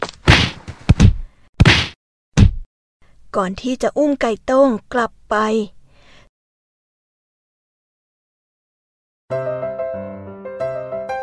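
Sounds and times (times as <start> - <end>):
whacks of villagers beating a fox: 0.0 - 2.7
speech: 3.4 - 5.8.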